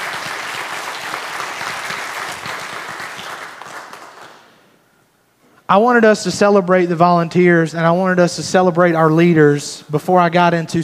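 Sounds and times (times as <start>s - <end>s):
audience applause: 0.0s - 4.5s
speech: 5.7s - 10.8s.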